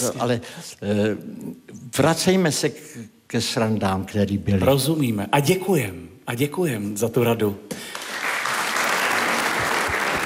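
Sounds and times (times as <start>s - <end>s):
speech: 0.0s - 8.0s
audience applause with a man clapping: 7.9s - 10.2s.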